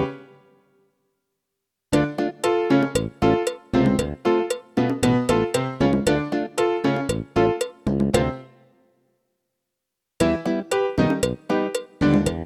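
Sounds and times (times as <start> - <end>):
latin rock music: 2.0 - 8.3, 10.2 - 12.4.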